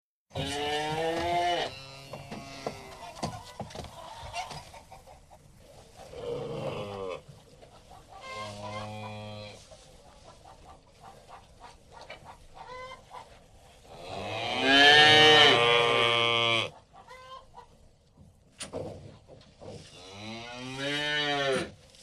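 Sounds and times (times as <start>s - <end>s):
cow mooing: 0.4s - 2.9s, 14.1s - 16.7s, 20.1s - 21.7s.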